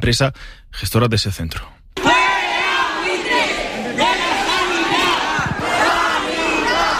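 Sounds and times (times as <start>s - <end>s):
speech: 0.0s - 1.8s
crowd of protesters chanting a slogan: 2.0s - 6.9s.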